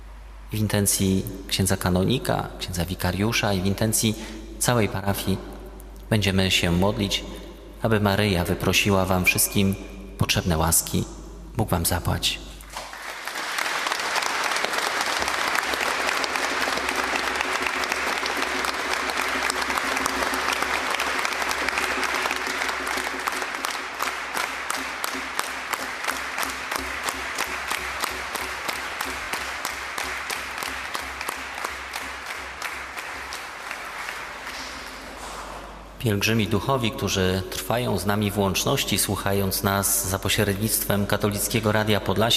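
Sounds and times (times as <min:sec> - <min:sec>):
speech: 0:00.5 - 0:05.5, 0:06.1 - 0:12.5, 0:36.1 - 0:42.3
Catholic pilgrims clapping: 0:12.6 - 0:36.0.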